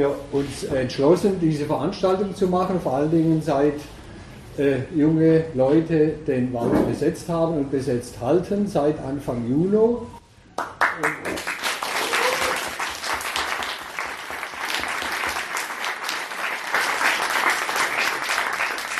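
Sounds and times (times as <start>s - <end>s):
speech: 0.0s - 4.0s, 4.6s - 11.6s
audience applause: 10.6s - 18.9s.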